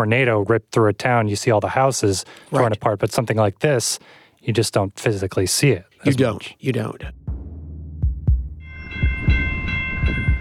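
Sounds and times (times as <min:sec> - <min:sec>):
speech: 0:00.0 - 0:07.2
train passing nearby: 0:08.8 - 0:10.3.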